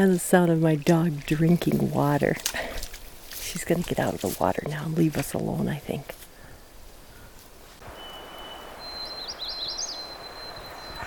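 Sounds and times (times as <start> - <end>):
speech: 0.0 - 2.8, 3.5 - 6.2
magnolia warbler singing in woods: 7.9 - 11.0.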